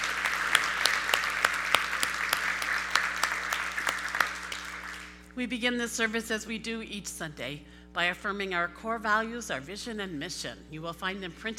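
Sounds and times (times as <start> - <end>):
audience applauding: 0.0 - 5.2
speech: 5.4 - 11.5.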